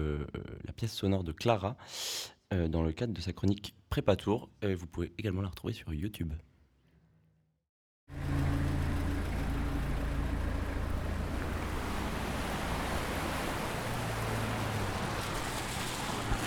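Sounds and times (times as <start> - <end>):
speech: 0.0 - 6.5
passing car engines rumbling on a city street: 8.1 - 16.4
rain on a city street: 8.2 - 16.4.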